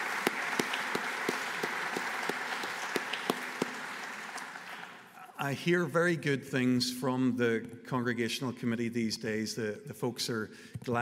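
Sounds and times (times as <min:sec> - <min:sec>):
audience applause: 0:00.0 - 0:05.1
speech: 0:05.4 - 0:10.9.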